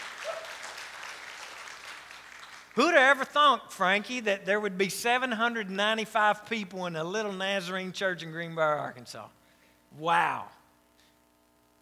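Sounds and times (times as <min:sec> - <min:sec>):
audience clapping: 0:00.0 - 0:03.1
speech: 0:02.8 - 0:10.6.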